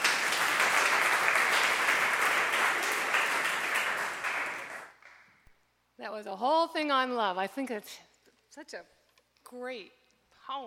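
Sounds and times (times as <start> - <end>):
concert audience clapping: 0.0 - 5.5
speech: 6.2 - 10.6.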